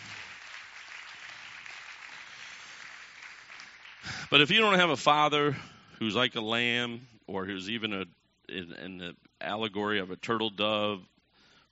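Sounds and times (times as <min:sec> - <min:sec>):
crowd applauding: 0:00.0 - 0:04.8
speech: 0:04.3 - 0:11.1.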